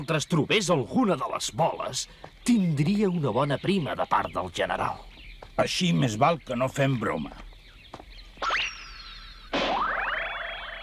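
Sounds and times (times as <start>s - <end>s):
speech: 0.0s - 7.5s
cartoon boing sound effects: 9.5s - 10.8s.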